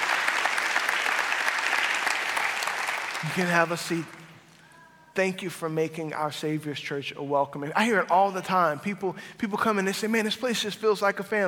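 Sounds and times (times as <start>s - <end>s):
church congregation applauding at a Celebration Sunday service: 0.0s - 4.5s
speech: 3.2s - 4.2s, 5.2s - 11.4s.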